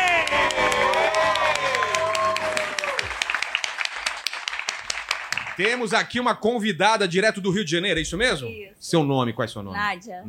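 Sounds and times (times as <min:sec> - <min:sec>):
audience applause: 0:00.0 - 0:06.0
speech: 0:05.6 - 0:10.2.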